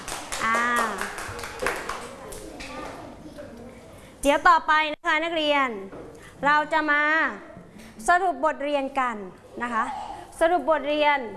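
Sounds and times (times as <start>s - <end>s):
students clapping hands: 0.0s - 3.0s
speech: 4.3s - 11.3s.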